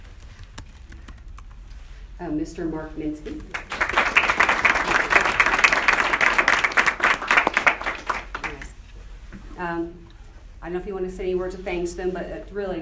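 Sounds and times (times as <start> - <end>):
speech: 2.2 - 3.8, 9.6 - 12.8
audience applauding: 3.5 - 8.8.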